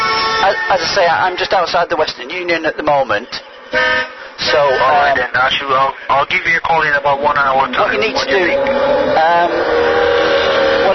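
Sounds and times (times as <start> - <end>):
car noise outside: 0.0 - 10.9
speech: 0.6 - 9.5.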